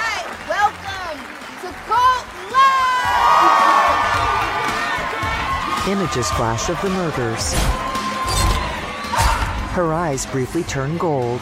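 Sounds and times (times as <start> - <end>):
large crowd of fans cheering and whooping: 0.0 - 9.7
speech: 5.9 - 7.9, 9.8 - 11.4.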